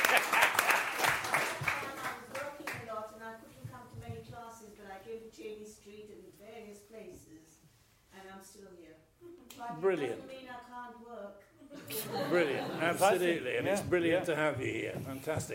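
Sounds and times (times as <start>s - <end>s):
laughter: 0.0s - 0.8s, 11.7s - 14.4s
audience applause: 0.0s - 2.2s
speech: 9.6s - 15.5s.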